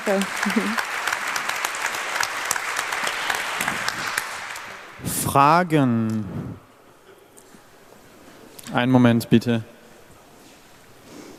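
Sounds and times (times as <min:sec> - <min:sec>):
speech: 0:00.0 - 0:01.0, 0:05.3 - 0:06.6, 0:08.7 - 0:09.7
audience applause: 0:00.0 - 0:05.0.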